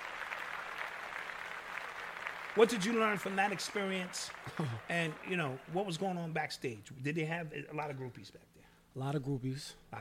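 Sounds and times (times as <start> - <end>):
audience applause: 0.0 - 6.3
speech: 2.6 - 9.9.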